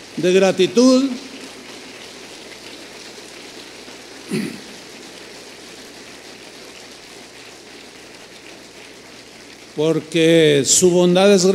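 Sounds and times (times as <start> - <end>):
speech: 0.2 - 1.3, 9.8 - 11.5
audience applause: 4.2 - 5.0.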